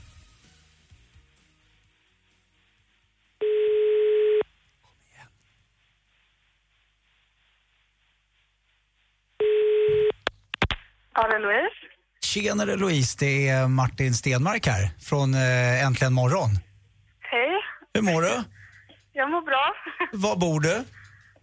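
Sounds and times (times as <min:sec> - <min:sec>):
ringback tone of an outgoing phone call: 0:03.4 - 0:04.4, 0:09.4 - 0:10.1
speech: 0:11.2 - 0:11.8, 0:12.4 - 0:16.7, 0:18.0 - 0:18.6, 0:19.2 - 0:21.0.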